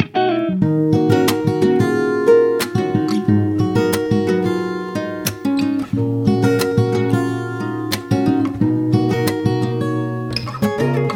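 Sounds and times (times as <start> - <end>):
lush guitars: 0.0 - 11.1.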